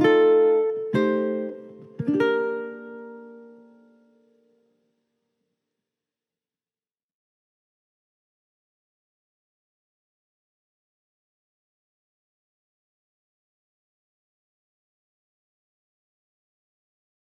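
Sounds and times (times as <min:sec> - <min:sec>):
ukulele: 0:00.0 - 0:04.8.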